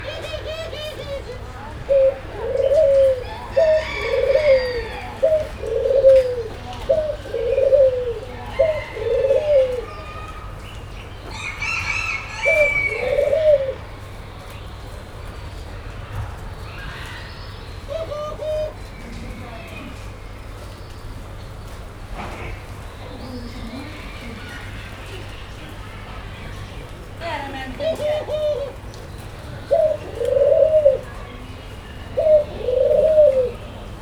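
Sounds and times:
laughing dove calling: 0.0s - 9.9s, 12.4s - 13.9s, 17.9s - 18.9s, 27.6s - 28.8s, 29.6s - 31.2s, 32.0s - 33.8s.

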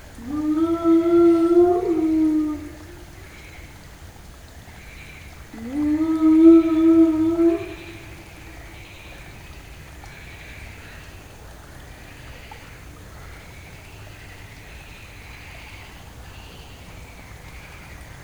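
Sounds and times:
spotted hyena at night in Jászberény zoo: 0.0s - 3.9s, 5.4s - 9.5s.

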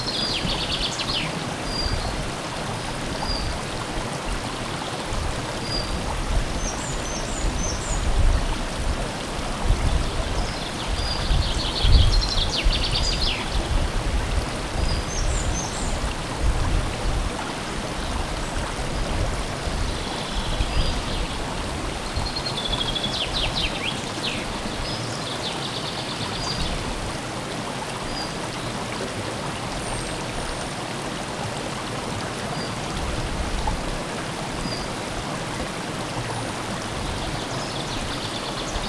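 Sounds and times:
stream flowing in Visegrad: 0.0s - 38.8s
wind from the left in Visegrad: 0.0s - 38.8s.

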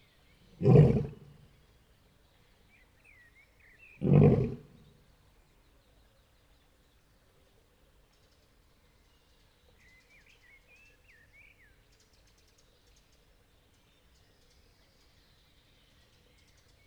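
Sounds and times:
lion roaring at Jaszbereny zoo: 0.6s - 1.4s, 4.0s - 4.8s.

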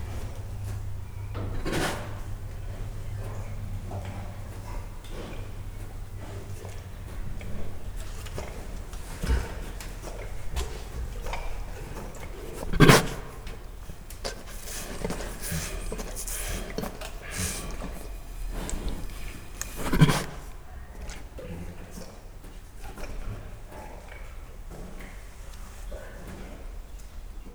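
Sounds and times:
Siberian tiger huffing at dinner: 0.0s - 27.5s.

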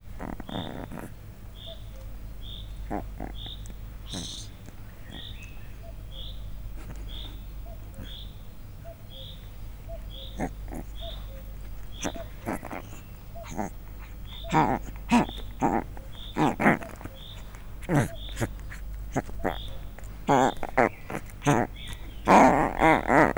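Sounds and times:
leopard cub mewing grumbles: 0.0s - 8.4s, 9.2s - 23.3s.

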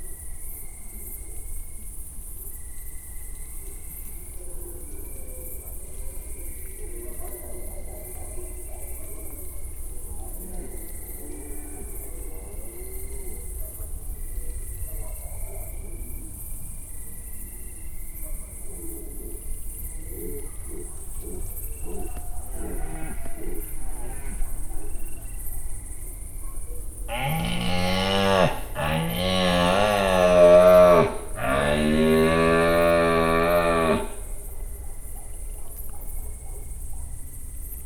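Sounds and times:
cricket in nature: 0.0s - 37.8s
red deer in nature: 21.8s - 25.0s, 27.1s - 34.4s
hunter's horn in nature: 27.1s - 34.4s.

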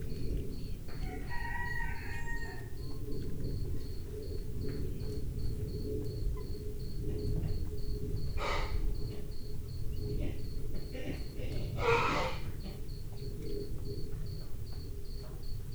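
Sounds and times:
cricket chirping in a farmyard: 0.0s - 15.7s
rooster crowing in a farmyard: 0.9s - 3.0s
quail calling in a farmyard: 11.8s - 12.5s.

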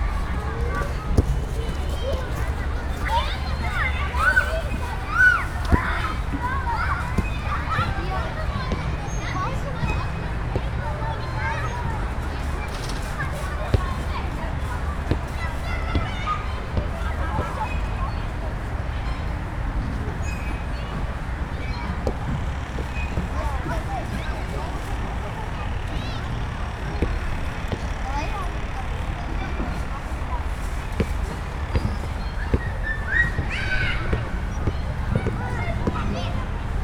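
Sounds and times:
busy playground: 0.0s - 36.8s.

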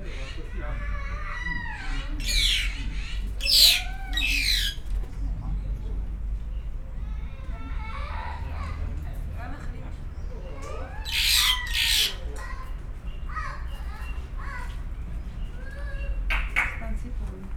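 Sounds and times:
Siberian rubythroat singing: 0.0s - 6.8s, 10.0s - 17.0s
visitors talking: 0.0s - 17.5s.

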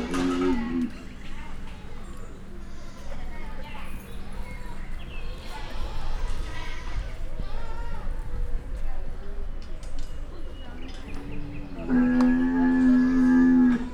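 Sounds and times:
female Bactrian camel being led out at Győr Zoo: 0.0s - 1.0s, 10.7s - 13.9s.

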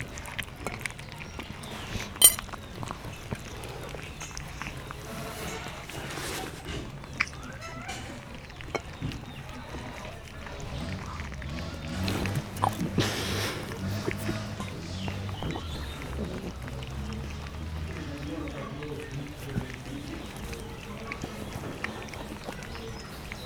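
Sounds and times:
cat eating in a farmyard: 0.0s - 23.4s
cat purring in a farmyard: 10.0s - 23.4s.

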